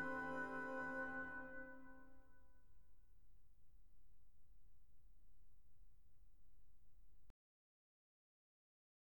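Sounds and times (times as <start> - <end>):
trumpet concerto: 0.0 - 2.5.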